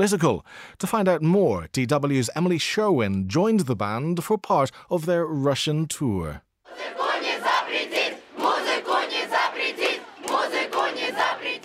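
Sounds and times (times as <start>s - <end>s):
speech: 0.0s - 7.0s
concert crowd chanting in unison: 6.7s - 11.6s.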